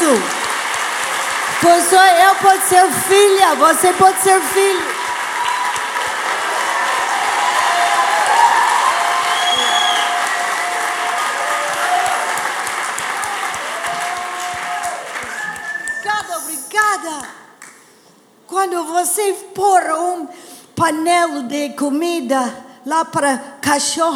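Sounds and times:
audience applause: 0.0 - 16.4
speech: 1.6 - 5.0, 18.6 - 24.1.

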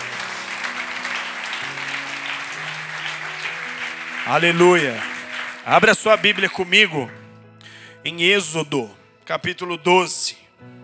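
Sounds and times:
church audience applause: 0.0 - 7.1
sustained organ or keyboard chords: 0.0 - 10.8
speech: 4.3 - 7.2, 8.0 - 10.7.

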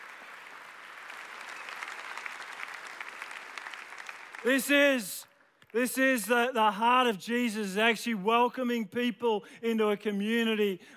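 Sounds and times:
congregation applause at a church service: 0.0 - 5.0
speech: 4.4 - 10.9.

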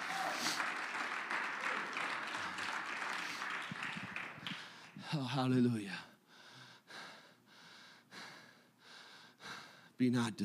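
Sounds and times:
audience clapping hands: 0.0 - 5.3
speech: 5.1 - 6.1, 10.0 - 10.4.

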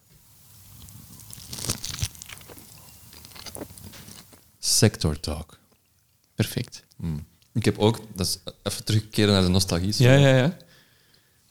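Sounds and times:
person chewing a bite of pizza: 0.6 - 4.4
speech: 4.7 - 5.6, 6.4 - 10.6.

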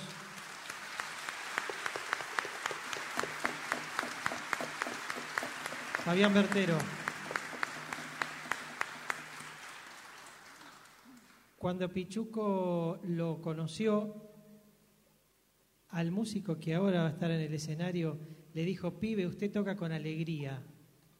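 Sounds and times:
audience applause: 0.0 - 11.5
speech: 6.1 - 7.0, 11.6 - 14.2, 16.0 - 20.7.

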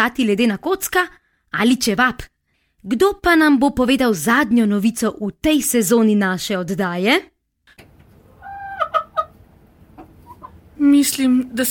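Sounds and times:
speech: 0.0 - 7.3, 10.8 - 11.6
hen clucking: 8.2 - 10.7.

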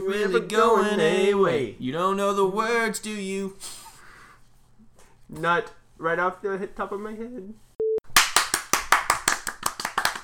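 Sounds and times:
speech: 0.1 - 3.8, 5.3 - 7.6
applause, hands clapping: 8.1 - 10.2.

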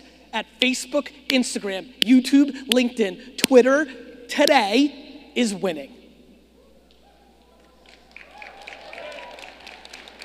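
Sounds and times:
speech: 0.4 - 6.0
audience clapping: 7.6 - 10.2.

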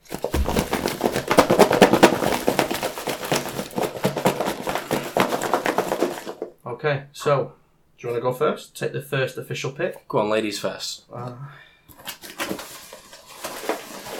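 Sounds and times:
folded papers being shaken in a hat: 0.0 - 6.5, 11.9 - 14.1
speech: 6.8 - 12.6.

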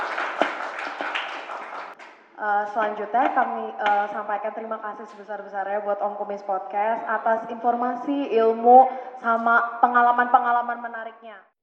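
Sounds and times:
audience clapping: 0.0 - 2.2
speech: 2.4 - 11.5.

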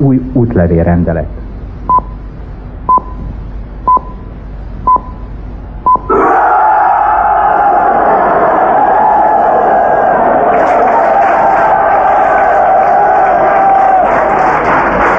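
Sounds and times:
speech: 0.2 - 1.4
radio time signal beeps marking midnight: 3.9 - 4.2, 4.9 - 5.2
crowd cheering and shouting: 6.1 - 15.0.

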